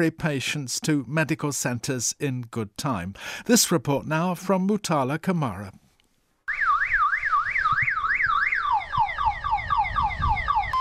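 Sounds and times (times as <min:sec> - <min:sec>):
speech: 0:00.0 - 0:05.8
motorcycle ambulance siren: 0:06.5 - 0:10.7.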